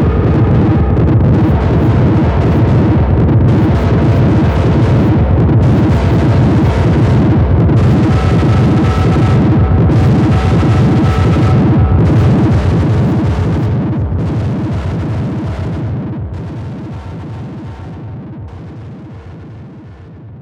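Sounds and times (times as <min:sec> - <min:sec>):
crunchy synth: 0:00.0 - 0:20.4.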